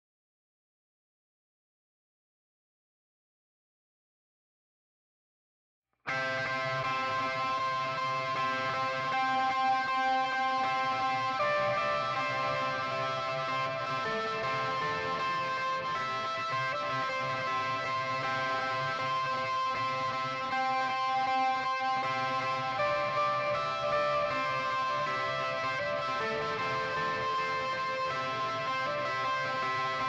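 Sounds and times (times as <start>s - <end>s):
guitar stems: 6.1s - 30.0s.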